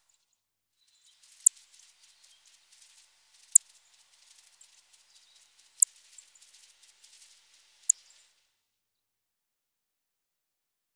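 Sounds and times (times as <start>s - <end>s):
song thrush singing: 0.8s - 8.3s.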